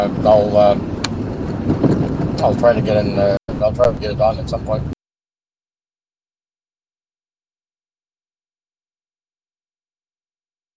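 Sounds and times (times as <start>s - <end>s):
speech: 0.0s - 1.0s, 1.6s - 4.9s
car engine and road rumble while driving home: 0.0s - 5.0s.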